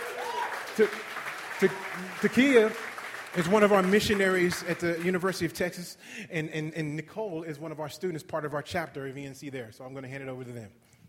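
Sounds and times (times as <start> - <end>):
audience applause: 0.0 - 5.6
speech: 0.8 - 10.8.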